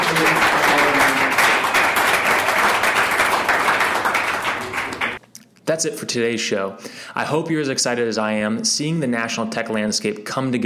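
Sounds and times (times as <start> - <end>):
audience applause: 0.0 - 5.2
speech: 5.8 - 10.6.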